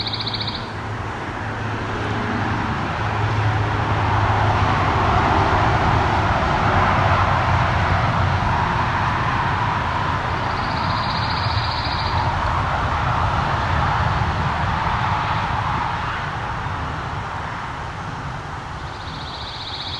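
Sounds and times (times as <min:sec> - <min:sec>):
pine warbler singing in a red pine: 0:00.0 - 0:00.8, 0:10.4 - 0:12.2, 0:18.8 - 0:19.9
highway traffic: 0:00.0 - 0:19.9.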